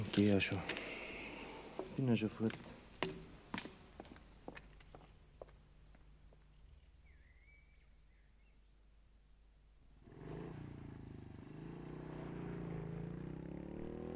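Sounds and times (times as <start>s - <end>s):
speech: 0.2s - 1.0s, 2.0s - 2.7s
sharp footsteps or knocks: 1.8s - 5.6s
motorcycle engine droning as a boy rides it away: 10.0s - 14.1s.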